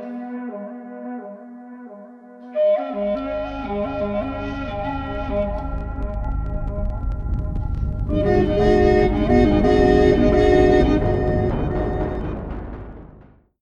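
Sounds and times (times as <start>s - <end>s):
main theme flute ringtone: 2.5s - 12.6s.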